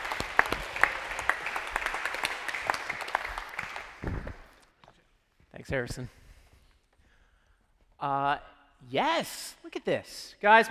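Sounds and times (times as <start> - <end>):
audience applause: 0.0 - 4.6
speech: 5.7 - 6.2, 8.0 - 10.6.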